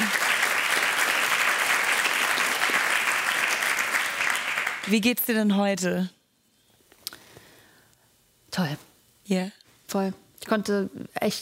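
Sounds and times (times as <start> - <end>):
audience applause: 0.0 - 5.0
speech: 4.9 - 6.2, 8.6 - 11.4.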